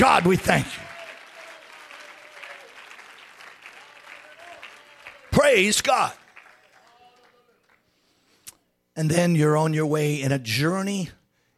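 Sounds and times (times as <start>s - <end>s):
audience clapping hands: 0.0s - 8.1s
speech: 0.1s - 0.8s, 5.4s - 6.2s, 9.0s - 11.5s.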